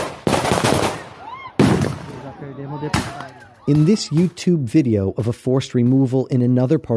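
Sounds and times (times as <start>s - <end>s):
police firing rubber bullets during a forced eviction in São Paulo: 0.0s - 2.2s
speech: 2.4s - 6.9s.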